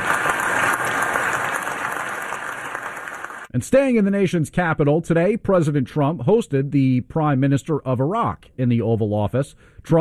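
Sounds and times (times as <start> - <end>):
senate chamber applause: 0.0 - 3.5
speech: 3.6 - 9.9.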